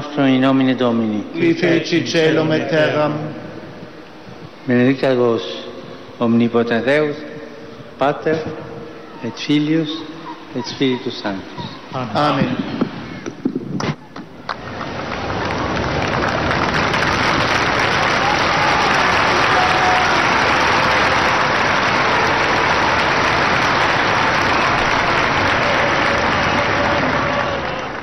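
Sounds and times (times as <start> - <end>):
speech: 0.2 - 3.4, 4.7 - 5.6, 6.2 - 7.3, 8.0 - 12.7
pilgrims applauding in Saint Peter's Square: 14.2 - 28.0.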